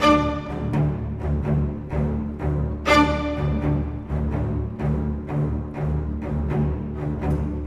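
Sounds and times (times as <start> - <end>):
cinematic orchestral strings: 0.0 - 7.6.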